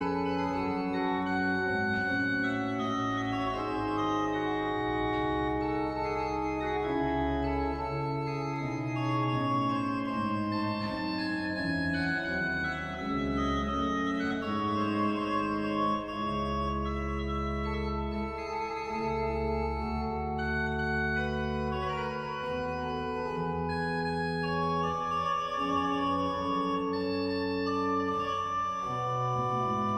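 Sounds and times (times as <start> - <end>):
organ concerto: 0.0 - 29.9.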